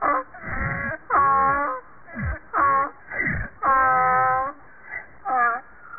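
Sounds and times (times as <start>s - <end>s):
donkey: 0.0s - 4.6s.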